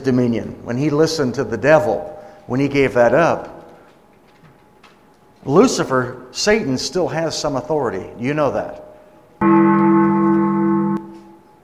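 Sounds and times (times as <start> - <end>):
speech: 0.0 - 3.6, 5.4 - 8.8, 9.4 - 10.3
bell ringing: 9.4 - 11.5.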